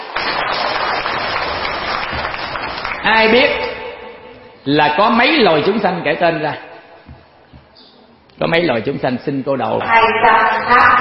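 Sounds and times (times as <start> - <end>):
audience applause at a Buddhist teaching talk: 0.0 - 3.5
speech: 3.1 - 3.7, 4.7 - 6.7, 8.4 - 10.9.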